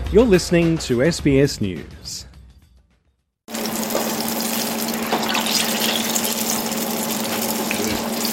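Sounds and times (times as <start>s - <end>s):
speech: 0.1s - 2.3s
eggplant strips sizzling in frying oil at Li Ho Fook: 3.5s - 8.3s.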